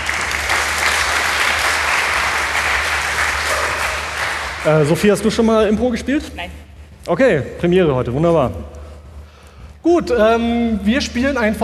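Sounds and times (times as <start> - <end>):
audience applause: 0.0 - 5.0
speech: 4.6 - 8.8, 9.8 - 11.6.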